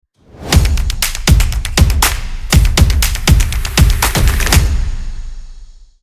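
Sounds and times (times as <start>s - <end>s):
fast stomp opener: 0.5s - 5.3s.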